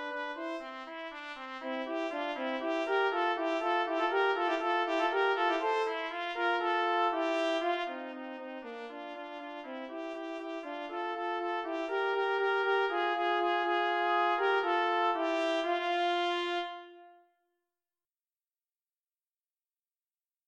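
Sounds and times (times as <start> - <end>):
trumpet and horn duet playing allegro: 0.0 - 17.2.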